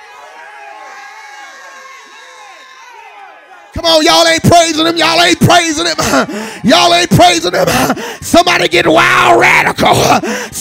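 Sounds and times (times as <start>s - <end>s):
audience screaming and cheering: 0.0s - 4.5s
speech: 3.8s - 10.5s.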